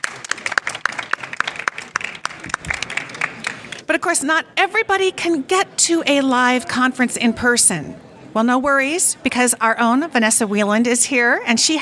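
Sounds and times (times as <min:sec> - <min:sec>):
live audience applauding: 0:00.0 - 0:03.9
speech: 0:03.9 - 0:11.8.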